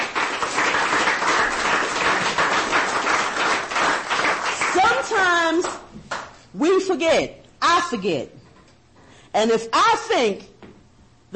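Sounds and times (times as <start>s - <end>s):
audience applause: 0.0s - 5.8s
speech: 6.6s - 8.4s, 9.3s - 10.5s.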